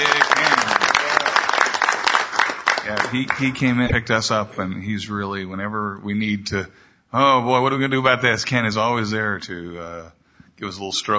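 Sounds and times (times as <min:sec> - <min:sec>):
audience applause at a gathering honouring a helper: 0:00.0 - 0:03.9
speech: 0:03.1 - 0:11.1.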